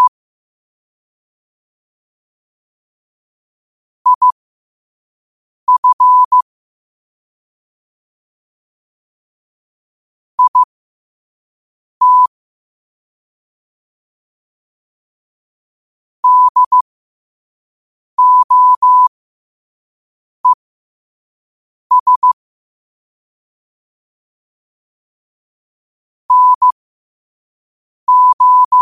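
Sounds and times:
morse code at 5 wpm: 0:04.1 - 0:04.4, 0:05.7 - 0:06.4, 0:10.4 - 0:10.7, 0:12.0 - 0:12.3, 0:16.2 - 0:16.8, 0:18.2 - 0:19.1, 0:21.9 - 0:22.4, 0:26.3 - 0:26.8, 0:28.1 - 0:28.8.

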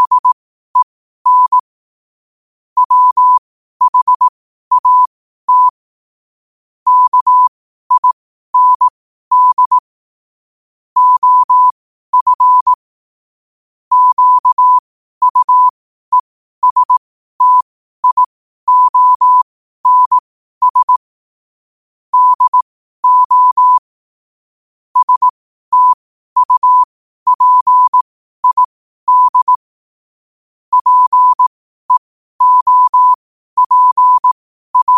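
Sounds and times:
morse code at 5 wpm: 0:00.0 - 0:01.6, 0:02.8 - 0:05.8, 0:06.9 - 0:09.9, 0:11.0 - 0:12.8, 0:13.9 - 0:21.1, 0:22.1 - 0:23.9, 0:25.0 - 0:29.6, 0:30.7 - 0:34.9.

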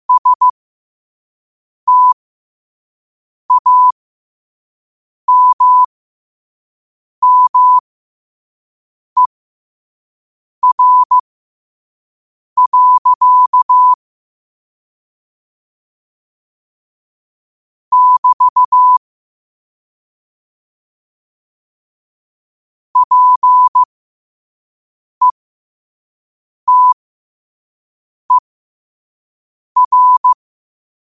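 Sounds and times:
morse code at 5 wpm: 0:00.1 - 0:00.5, 0:01.9 - 0:02.2, 0:03.5 - 0:03.9, 0:05.3 - 0:05.9, 0:07.2 - 0:07.8, 0:10.6 - 0:11.2, 0:12.6 - 0:14.0, 0:17.9 - 0:19.0, 0:23.0 - 0:23.9, 0:26.7 - 0:27.0, 0:29.8 - 0:30.4.

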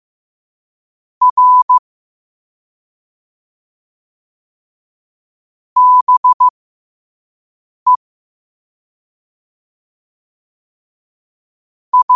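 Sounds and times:
morse code at 5 wpm: 0:01.2 - 0:01.8, 0:05.8 - 0:06.5, 0:12.0 - 0:12.1.

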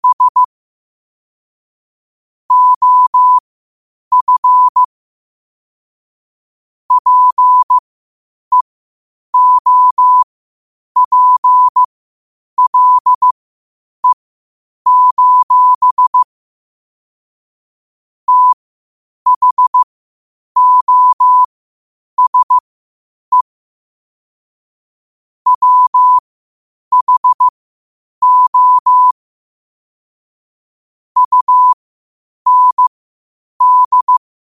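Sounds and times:
morse code at 5 wpm: 0:00.0 - 0:00.5, 0:02.5 - 0:03.4, 0:04.1 - 0:04.9, 0:06.9 - 0:07.8, 0:09.4 - 0:10.3, 0:11.0 - 0:11.9, 0:12.6 - 0:13.4, 0:14.9 - 0:16.3, 0:18.3 - 0:18.6, 0:19.3 - 0:19.9, 0:20.6 - 0:21.5, 0:22.2 - 0:22.6, 0:25.5 - 0:26.2, 0:26.9 - 0:27.5, 0:28.2 - 0:29.2, 0:31.2 - 0:31.8, 0:32.5 - 0:32.9, 0:33.6 - 0:34.2.

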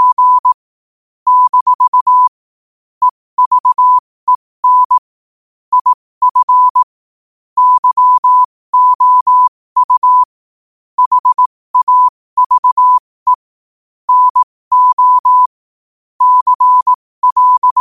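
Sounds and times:
morse code at 5 wpm: 0:00.0 - 0:00.6, 0:01.3 - 0:02.3, 0:03.0 - 0:05.0, 0:05.7 - 0:06.9, 0:07.6 - 0:10.3, 0:11.0 - 0:13.4, 0:14.1 - 0:15.5, 0:16.2 - 0:17.8.

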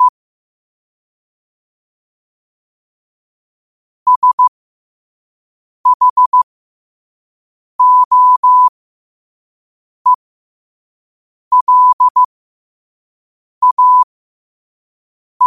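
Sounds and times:
morse code at 5 wpm: 0:04.1 - 0:04.5, 0:05.9 - 0:06.4, 0:07.8 - 0:08.7, 0:11.5 - 0:12.3, 0:13.6 - 0:14.1.

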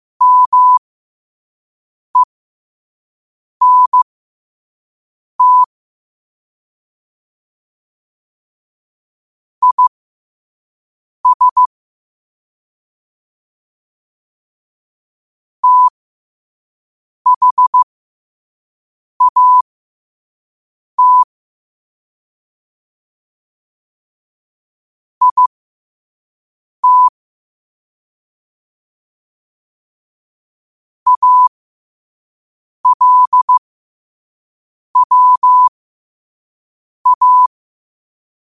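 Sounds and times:
morse code at 5 wpm: 0:00.2 - 0:00.8, 0:03.6 - 0:04.0, 0:05.4 - 0:05.7, 0:09.6 - 0:09.9, 0:11.2 - 0:11.7, 0:15.6 - 0:15.9, 0:17.3 - 0:17.8, 0:19.2 - 0:19.6, 0:21.0 - 0:21.3, 0:25.2 - 0:25.5, 0:26.8 - 0:27.1, 0:31.1 - 0:31.5, 0:32.8 - 0:33.6, 0:35.0 - 0:35.7, 0:37.0 - 0:37.5.

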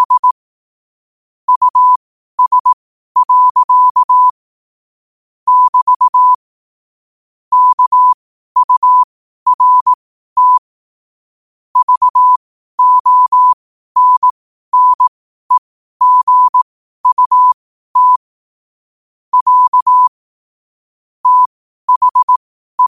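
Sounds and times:
morse code at 5 wpm: 0:00.0 - 0:00.4, 0:01.5 - 0:04.3, 0:05.5 - 0:06.4, 0:07.5 - 0:10.7, 0:11.8 - 0:18.2, 0:19.3 - 0:20.1, 0:21.2 - 0:22.8.

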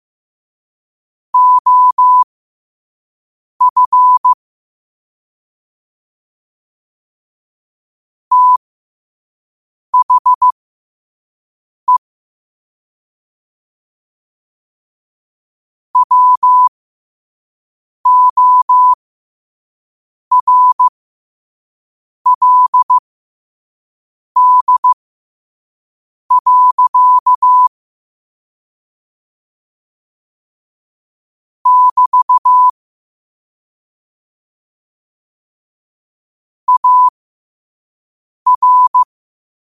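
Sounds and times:
morse code at 5 wpm: 0:01.4 - 0:02.3, 0:03.6 - 0:04.4, 0:08.3 - 0:08.6, 0:10.0 - 0:10.6, 0:16.0 - 0:16.7, 0:18.1 - 0:19.0, 0:20.3 - 0:20.9, 0:22.3 - 0:23.0, 0:24.4 - 0:25.0, 0:26.3 - 0:27.7, 0:31.7 - 0:32.7, 0:36.7 - 0:37.1, 0:38.5 - 0:39.1.

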